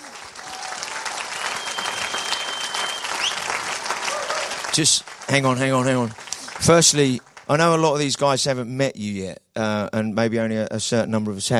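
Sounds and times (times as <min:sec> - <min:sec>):
audience applause welcoming guests onto the stage at a church gathering: 0:00.0 - 0:08.1
speech: 0:04.8 - 0:11.5.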